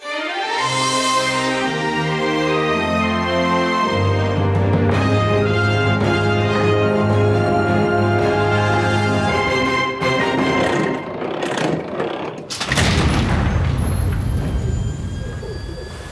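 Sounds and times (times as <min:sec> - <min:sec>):
orchestral version of a theme song: 0:00.0 - 0:11.2
giant vault door opening: 0:09.3 - 0:16.1.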